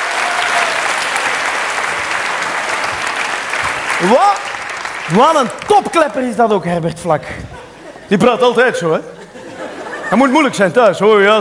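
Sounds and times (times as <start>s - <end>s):
crowd clapping: 0.0s - 6.4s
speech: 4.0s - 4.5s, 5.1s - 9.2s, 10.1s - 11.3s
laughter: 7.2s - 10.8s.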